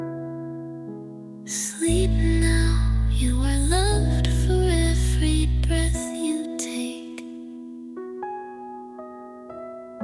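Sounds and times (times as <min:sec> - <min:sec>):
lullaby singing: 0:01.5 - 0:07.8.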